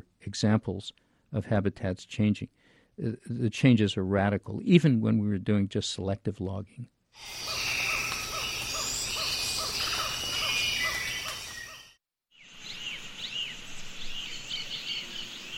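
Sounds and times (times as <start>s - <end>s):
speech: 0.3s - 7.8s
bird calls in rainforest on Costa Rica's Osa Peninsula: 7.2s - 15.5s
buzzing insects in rainforest on Costa Rica's Osa Peninsula: 7.2s - 15.5s.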